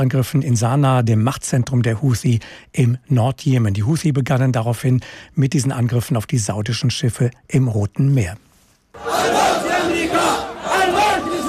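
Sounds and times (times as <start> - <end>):
speech: 0.0 - 9.4
large crowd chanting slogans at rally: 9.0 - 11.4.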